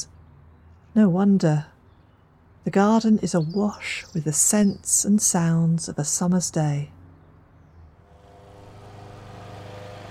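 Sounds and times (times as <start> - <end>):
speech: 1.0 - 1.7, 2.6 - 7.0
motor lawn mower running: 8.1 - 10.0.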